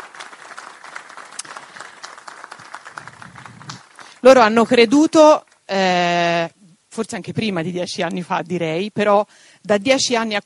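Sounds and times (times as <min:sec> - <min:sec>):
applause: 0:00.0 - 0:05.2
speech: 0:04.2 - 0:10.4.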